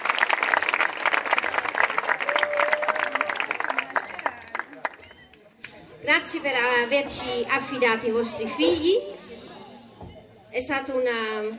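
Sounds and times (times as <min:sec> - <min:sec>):
audience applause: 0:00.0 - 0:05.5
speech: 0:06.1 - 0:09.1, 0:10.6 - 0:11.5.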